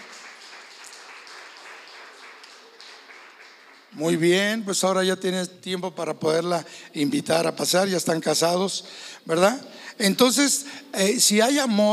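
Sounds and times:
crowd audience applause: 0:00.0 - 0:04.2
speech: 0:03.9 - 0:11.9.

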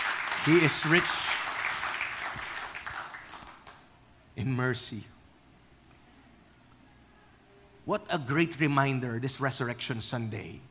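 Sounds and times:
church congregation applauding at a Resurrection Sunday service: 0:00.0 - 0:03.9
speech: 0:00.4 - 0:01.3, 0:04.4 - 0:05.1, 0:07.9 - 0:10.7.

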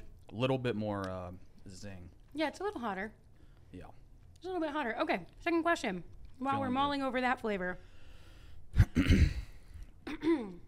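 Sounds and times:
speech: 0:00.3 - 0:07.9, 0:08.7 - 0:09.4, 0:10.1 - 0:10.6
person clearing throat after eating hot wings: 0:08.8 - 0:10.6.

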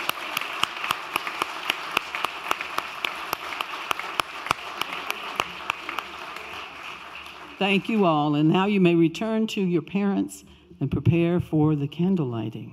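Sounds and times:
audience applause: 0:00.0 - 0:08.2
speech: 0:07.6 - 0:12.7.

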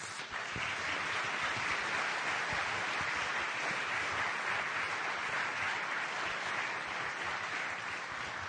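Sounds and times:
audience applause: 0:00.0 - 0:08.4.

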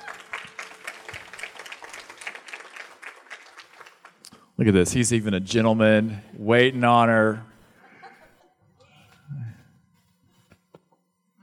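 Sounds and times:
audience clapping welcoming guests onto a platform: 0:00.0 - 0:04.5
speech: 0:04.6 - 0:07.5.

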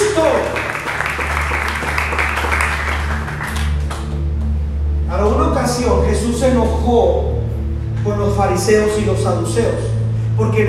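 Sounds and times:
audience applauding: 0:00.0 - 0:04.2
low sustained hum: 0:00.0 - 0:10.6
speech: 0:06.4 - 0:07.4, 0:08.2 - 0:10.6.

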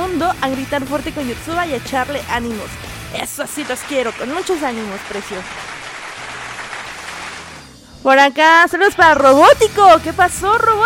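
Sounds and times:
speech: 0:00.3 - 0:05.7, 0:08.0 - 0:10.8
applause: 0:03.3 - 0:07.8.

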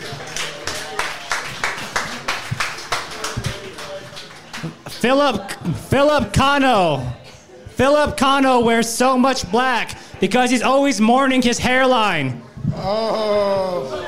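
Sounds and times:
audience applause: 0:00.0 - 0:05.4
speech: 0:05.0 - 0:07.2, 0:07.8 - 0:14.0.

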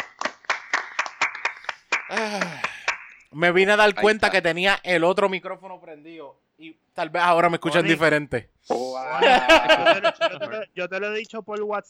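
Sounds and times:
laughter: 0:00.0 - 0:03.1, 0:08.8 - 0:10.7
applause, people clapping: 0:00.0 - 0:03.3
speech: 0:02.1 - 0:02.6, 0:03.3 - 0:11.8.

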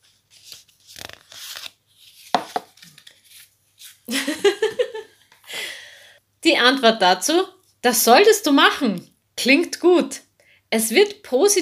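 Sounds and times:
deck of cards shuffled for a question-and-answer card draw: 0:00.3 - 0:04.1
laughter: 0:04.1 - 0:05.0
soft breathing: 0:05.4 - 0:06.2
speech: 0:06.5 - 0:11.6.

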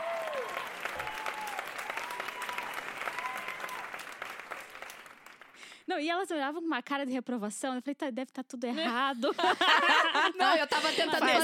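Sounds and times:
applause: 0:00.0 - 0:05.9
speech: 0:05.9 - 0:11.4
laughter: 0:08.8 - 0:11.4.

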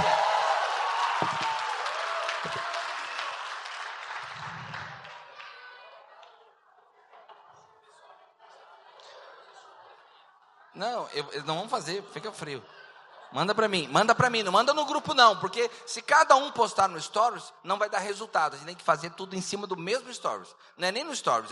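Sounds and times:
round of applause and cheering: 0:00.0 - 0:05.9
speech: 0:01.2 - 0:01.5, 0:10.8 - 0:21.5.

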